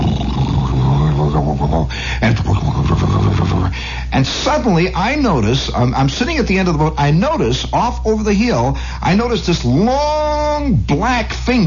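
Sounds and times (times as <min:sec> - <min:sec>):
voice imitating a roaring tornado: 0:00.0 - 0:03.8
speech: 0:01.6 - 0:11.6.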